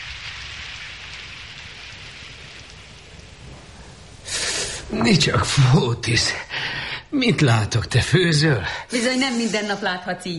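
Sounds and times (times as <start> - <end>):
low rumble of thunder: 0.0 - 8.1
heavy rain: 0.0 - 10.3
speech: 4.9 - 10.3.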